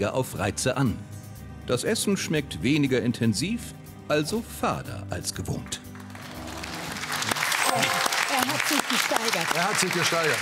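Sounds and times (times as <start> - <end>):
speech: 0.0 - 5.9, 7.7 - 10.4
audience applause: 5.9 - 10.4.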